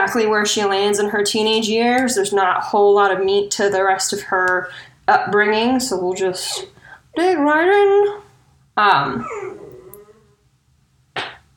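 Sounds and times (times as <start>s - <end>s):
speech: 0.1s - 8.2s, 8.8s - 9.6s
dog whimpering outside the door: 9.1s - 10.4s.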